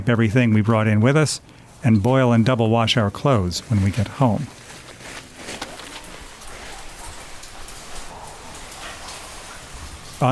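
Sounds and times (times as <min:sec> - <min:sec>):
speech: 0:00.0 - 0:04.6
water drops falling from a stone cave ceiling: 0:03.6 - 0:10.2.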